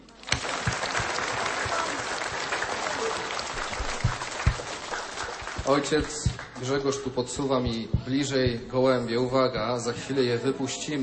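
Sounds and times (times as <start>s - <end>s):
audience applause: 0.0s - 7.2s
speech: 5.7s - 11.0s.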